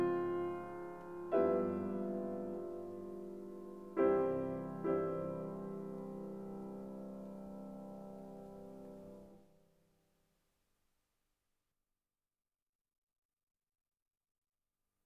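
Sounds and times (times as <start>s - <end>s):
piano prelude in C major: 0.0s - 9.5s.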